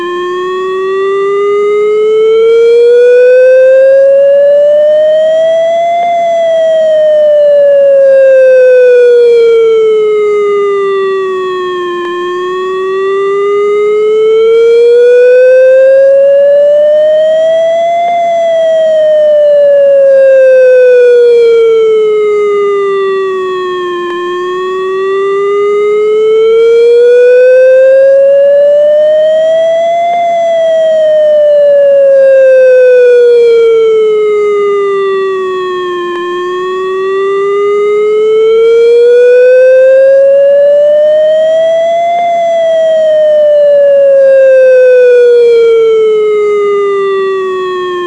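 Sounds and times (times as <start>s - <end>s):
alert sirens: 0.0s - 48.0s.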